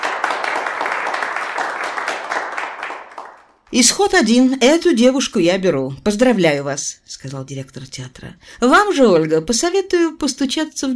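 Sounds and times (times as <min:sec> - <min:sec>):
prolonged applause: 0:00.0 - 0:03.7
speech: 0:03.7 - 0:10.9.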